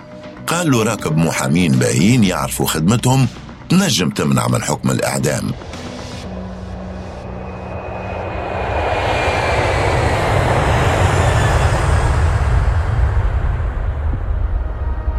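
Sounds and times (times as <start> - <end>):
airplane engine roaring: 0.0 - 15.1
speech: 0.5 - 5.7.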